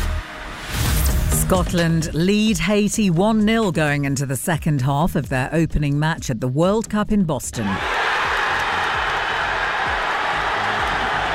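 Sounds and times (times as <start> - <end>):
speech: 1.5 - 8.0
football supporters cheering a Scotland goal at a fan event in Glasgow: 7.6 - 11.3.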